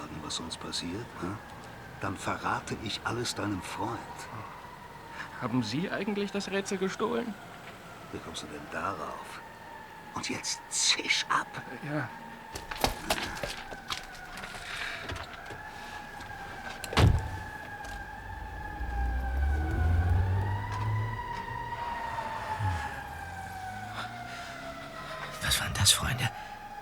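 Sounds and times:
speech: 0.3 - 4.6, 5.4 - 7.5, 8.1 - 9.5, 10.2 - 13.2
car engine rumble pulling away: 13.5 - 25.9
door slamming: 16.7 - 18.2.

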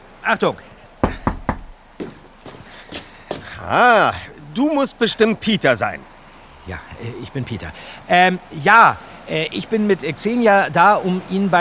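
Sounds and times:
speech: 0.3 - 0.8, 3.6 - 11.5
knocking on a door: 1.0 - 1.8.

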